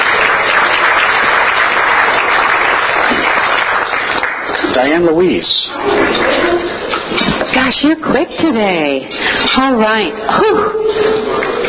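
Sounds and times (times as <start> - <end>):
applause welcoming the head table at a meeting: 0.0 - 4.8, 5.8 - 6.8
speech: 4.8 - 6.1, 7.7 - 11.6.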